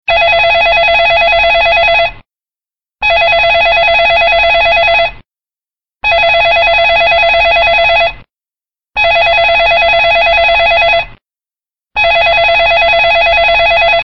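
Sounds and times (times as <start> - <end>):
landline phone ringtone: 0.1 - 2.2, 3.0 - 5.2, 6.0 - 8.2, 9.0 - 11.2, 12.0 - 14.0.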